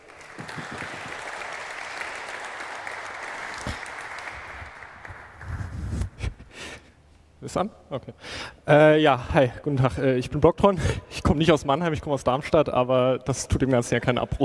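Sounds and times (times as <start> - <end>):
audience applause: 0.0 - 5.8
speech: 7.4 - 14.4.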